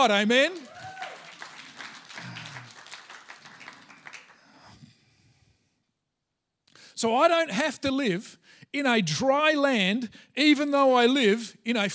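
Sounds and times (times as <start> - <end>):
speech: 0.0 - 0.7, 7.0 - 11.9
audience clapping: 0.0 - 4.8
person cheering: 0.5 - 1.5.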